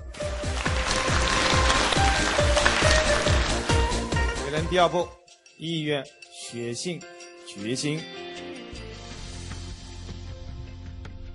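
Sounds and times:
audience applause: 0.1s - 4.0s
speech: 4.6s - 8.2s.

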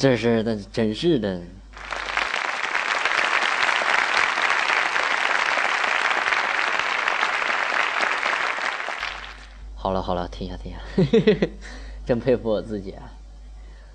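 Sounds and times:
speech: 0.0s - 1.6s, 9.8s - 13.2s
applause: 1.8s - 9.6s.

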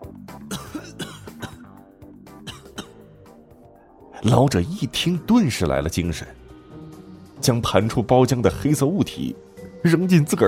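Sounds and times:
weak raspy coughs: 0.4s - 3.4s
speech: 4.2s - 6.4s, 7.4s - 10.4s.

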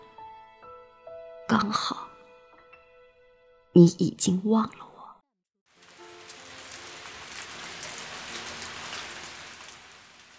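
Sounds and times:
speech: 1.5s - 2.1s, 3.8s - 4.8s
steady rain falling: 5.7s - 10.3s.

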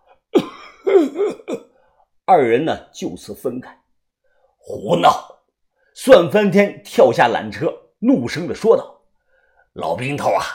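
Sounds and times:
old man coughing: 0.3s - 1.8s
speech: 2.3s - 3.8s, 4.7s - 5.4s, 6.0s - 9.0s, 9.8s - 10.5s.

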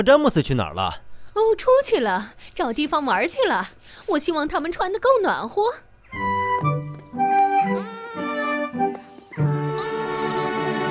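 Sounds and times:
speech: 0.0s - 6.3s, 7.7s - 10.0s
lamb bleating: 7.7s - 8.6s, 9.8s - 10.6s.

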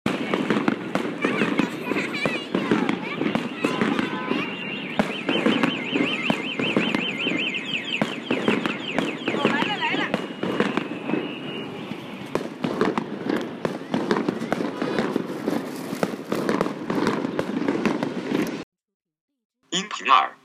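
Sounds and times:
voices: 0.1s - 12.4s, 19.8s - 20.4s
New Year fireworks crackling and banging: 0.1s - 18.6s
wavering high whistle: 3.6s - 12.3s.

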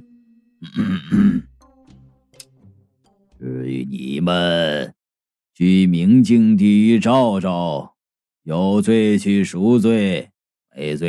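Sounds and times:
cough: 0.6s - 1.5s
speech: 0.6s - 1.5s, 3.9s - 5.0s, 5.6s - 7.9s, 8.5s - 11.0s.

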